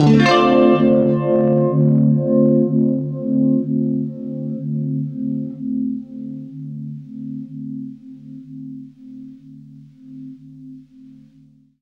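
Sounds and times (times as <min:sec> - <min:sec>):
guitar through UNIVIB DM7 effect: 0:00.0 - 0:08.0.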